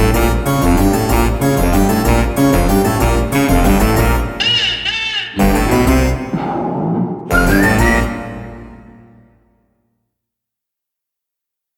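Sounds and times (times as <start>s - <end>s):
backing track: 0.0s - 9.2s.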